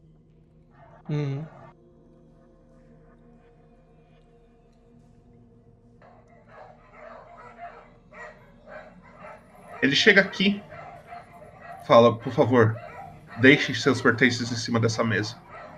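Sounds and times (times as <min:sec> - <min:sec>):
steady low hum: 0:00.0 - 0:15.7
speech: 0:01.1 - 0:01.6, 0:09.8 - 0:10.7, 0:11.9 - 0:15.4
several dogs barking: 0:06.0 - 0:15.7.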